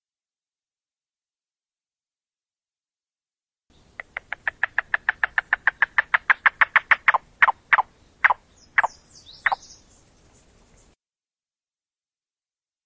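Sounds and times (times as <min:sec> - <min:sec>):
yellow-billed cuckoo knocking call: 0:04.0 - 0:09.6.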